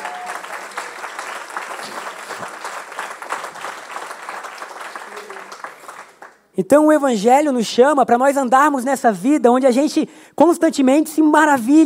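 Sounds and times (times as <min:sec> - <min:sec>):
audience applause: 0:00.0 - 0:06.4
speech: 0:06.6 - 0:11.8.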